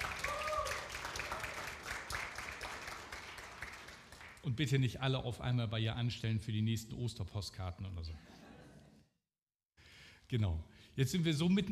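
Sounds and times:
crowd applause: 0.0s - 4.4s
speech: 4.4s - 8.4s, 10.3s - 11.7s.

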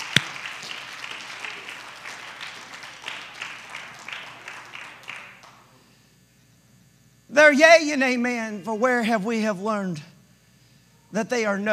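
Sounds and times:
crowd clapping hands: 0.0s - 5.8s
speech: 7.3s - 10.1s, 11.1s - 11.7s.

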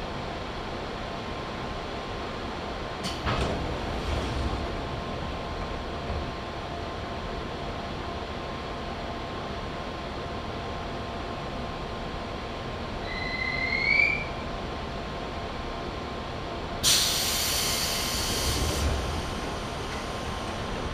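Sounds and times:
Chuo West Line train rumbling: 0.0s - 20.9s
short rising squeal: 13.0s - 14.4s.

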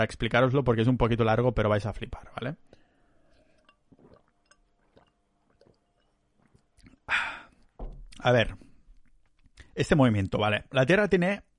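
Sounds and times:
speech: 0.0s - 2.7s, 8.2s - 8.6s, 9.8s - 11.5s
person drinking water, sipping and swallowing: 2.7s - 9.8s
loud breathy burst: 7.1s - 7.6s
short noisy thump: 7.8s - 8.1s.

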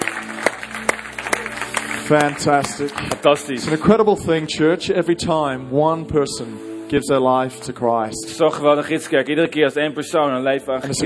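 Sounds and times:
audience applause: 0.0s - 3.8s
speech: 2.1s - 11.0s.

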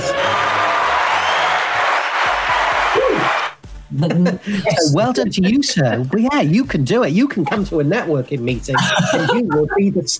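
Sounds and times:
crowd cheering and clapping: 0.0s - 3.6s
laughter: 3.9s - 4.8s, 8.7s - 10.0s
speech: 4.0s - 10.1s.

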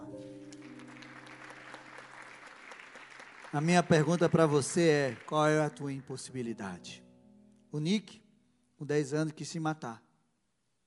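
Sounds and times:
audience applause: 0.4s - 6.3s
speech: 3.5s - 7.0s, 7.7s - 8.2s, 8.8s - 10.0s.

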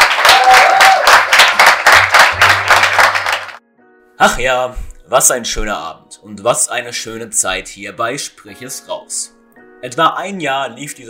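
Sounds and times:
audience applause: 0.0s - 3.6s
speech: 4.2s - 11.0s.

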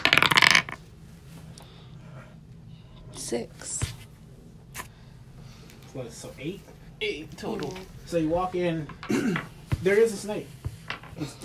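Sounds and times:
dice clattering across a hard surface: 0.0s - 0.8s, 10.8s - 11.2s
speech: 3.3s - 3.9s, 6.0s - 10.6s, 11.2s - 11.4s.

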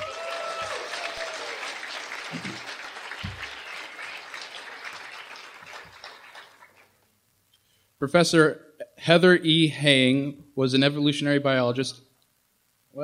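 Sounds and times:
audience applause: 0.0s - 7.0s
speech: 2.3s - 2.7s, 8.0s - 12.0s.

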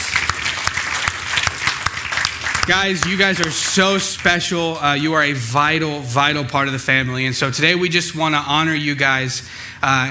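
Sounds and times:
crowd applauding: 0.0s - 4.8s
speech: 2.7s - 10.0s.

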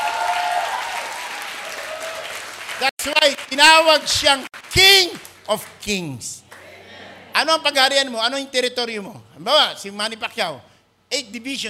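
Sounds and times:
audience applause: 0.0s - 5.7s
speech: 2.8s - 6.4s, 7.4s - 11.6s.

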